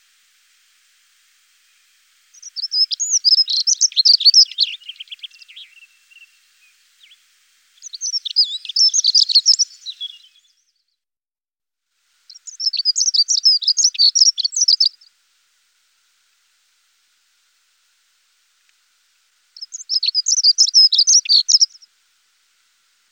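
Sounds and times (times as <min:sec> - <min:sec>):
dunnock song warble: 0:01.7 - 0:07.2, 0:07.8 - 0:10.7, 0:12.3 - 0:15.0, 0:19.6 - 0:21.9.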